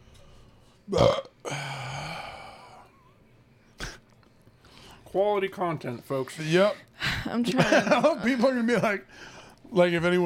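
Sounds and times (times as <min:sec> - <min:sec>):
speech: 0:00.9 - 0:01.3, 0:05.2 - 0:10.2
burping: 0:00.9 - 0:02.9.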